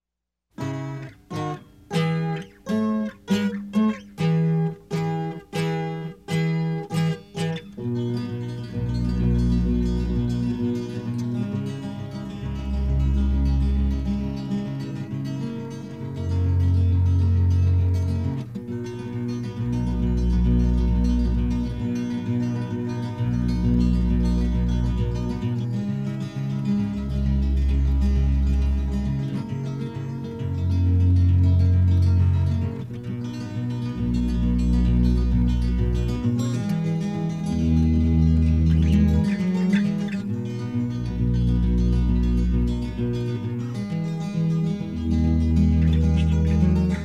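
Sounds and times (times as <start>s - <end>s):
instrumental music: 0.5s - 47.0s.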